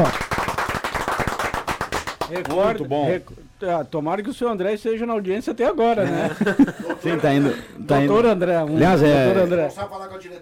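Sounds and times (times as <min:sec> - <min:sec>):
speech: 0:00.0 - 0:00.2, 0:02.3 - 0:10.4
applause sound effect: 0:00.0 - 0:02.7
laughter: 0:06.0 - 0:07.8.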